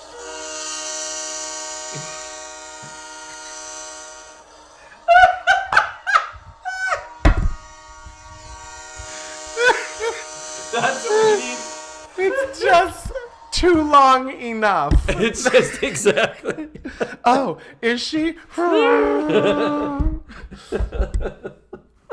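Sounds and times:
diesel train horn sound effect: 0:00.0 - 0:04.8, 0:07.6 - 0:12.9
laughter: 0:04.8 - 0:07.2, 0:09.6 - 0:11.6, 0:12.2 - 0:13.3, 0:15.0 - 0:17.3, 0:18.6 - 0:22.1
speech: 0:13.6 - 0:20.1, 0:20.7 - 0:21.6.

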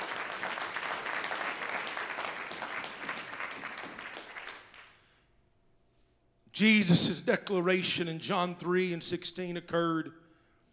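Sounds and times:
audience clapping hands: 0:00.0 - 0:05.0
speech: 0:06.6 - 0:10.2.

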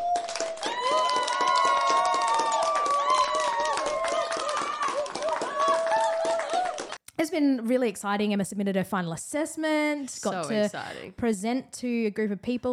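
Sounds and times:
inserted crowd applause sound effect: 0:00.0 - 0:07.0
speech: 0:07.4 - 0:12.7.

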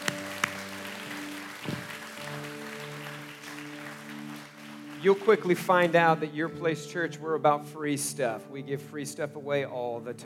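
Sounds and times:
audience clapping: 0:00.0 - 0:06.3
speech: 0:05.0 - 0:10.2.

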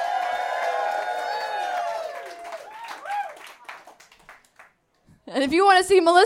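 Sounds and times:
high whoops and shouted voices: 0:00.0 - 0:03.5
crowd clapping: 0:00.0 - 0:05.0
speech: 0:05.3 - 0:06.2.

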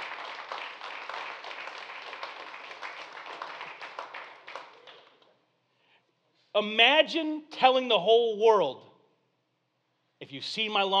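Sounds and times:
people clapping: 0:00.0 - 0:05.5
speech: 0:06.6 - 0:08.8, 0:10.3 - 0:10.9.

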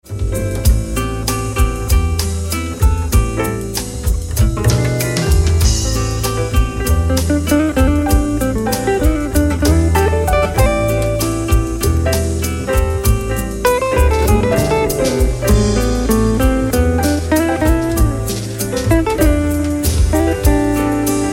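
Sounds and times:
bossa nova music: 0:00.0 - 0:21.3.

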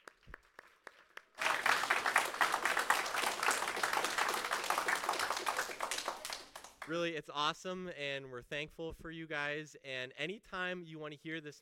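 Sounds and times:
audience applause: 0:00.0 - 0:06.9
speech: 0:06.9 - 0:11.6.

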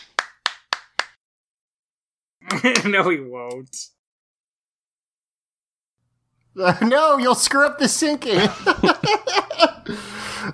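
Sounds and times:
hands clapping: 0:00.0 - 0:01.2
speech: 0:02.6 - 0:04.0, 0:06.6 - 0:10.5
laughter: 0:08.2 - 0:10.5.

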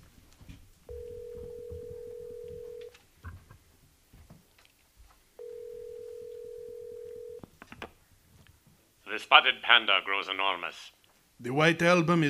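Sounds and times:
telephone dialing: 0:00.9 - 0:02.9, 0:05.4 - 0:07.4
speech: 0:09.2 - 0:12.2.

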